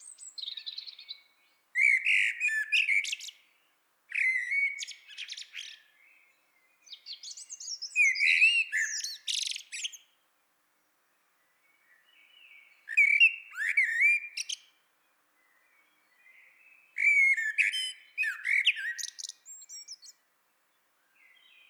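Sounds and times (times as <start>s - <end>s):
Eurasian blackbird singing: 0.0s - 3.4s, 4.1s - 10.1s, 11.8s - 14.8s, 15.4s - 20.2s.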